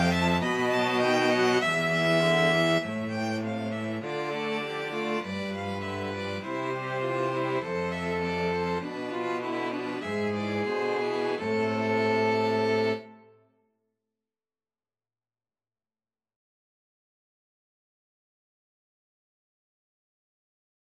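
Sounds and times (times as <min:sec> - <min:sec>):
string quartet: 0:00.0 - 0:13.3.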